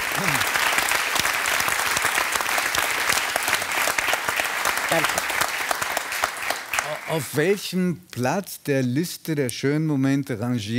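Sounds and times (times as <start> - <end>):
audience applause: 0.0 - 7.6
speech: 4.9 - 5.2, 7.1 - 10.7.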